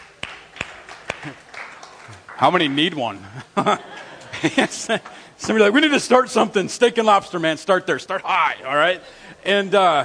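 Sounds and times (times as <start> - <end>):
scattered audience hand claps: 0.0 - 3.1
speech: 1.2 - 1.5, 2.1 - 10.0
laughter: 3.2 - 5.3.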